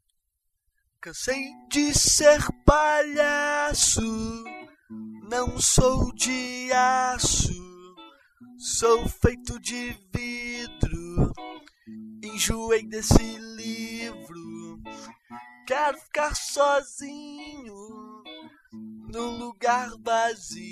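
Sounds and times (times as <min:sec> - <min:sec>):
guitar: 0:01.0 - 0:20.6.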